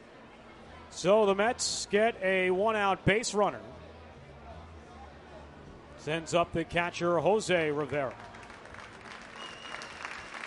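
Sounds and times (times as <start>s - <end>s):
speech: 1.0s - 3.8s, 6.0s - 8.3s
hometown crowd applause at a ballgame: 7.8s - 10.4s.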